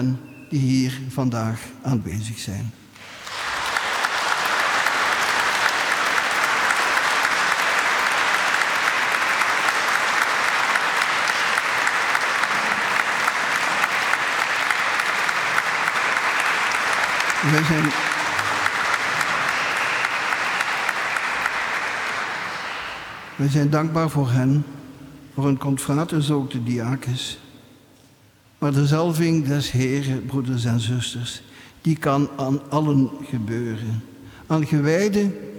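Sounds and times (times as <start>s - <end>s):
speech: 0.0s - 2.8s, 17.4s - 18.2s, 23.4s - 24.8s, 25.4s - 27.4s, 28.6s - 35.5s
audience applause: 3.0s - 23.6s.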